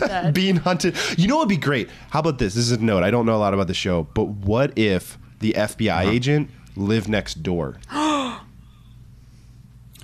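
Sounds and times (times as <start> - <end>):
speech: 0.1 - 8.0
person gasping: 7.9 - 9.0.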